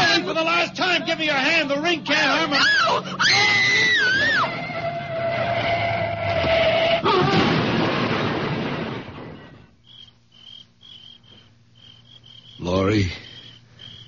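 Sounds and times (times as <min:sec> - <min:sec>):
speech: 0:00.4 - 0:03.7, 0:12.7 - 0:13.2
shrill wavering screech: 0:02.6 - 0:07.1
car crashing into a tree: 0:07.0 - 0:09.6.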